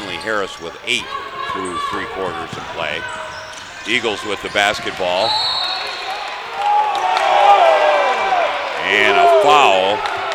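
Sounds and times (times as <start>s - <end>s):
basketball crowd reacting to a foul: 0.0s - 10.3s
people shouting: 0.0s - 10.3s
speech: 0.2s - 3.2s, 3.8s - 5.5s, 8.9s - 10.2s.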